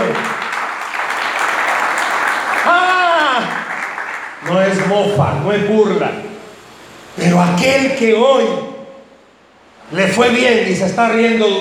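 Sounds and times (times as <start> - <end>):
audience applause: 0.0 - 5.1
speech: 4.5 - 6.2, 7.2 - 8.7, 9.9 - 11.5.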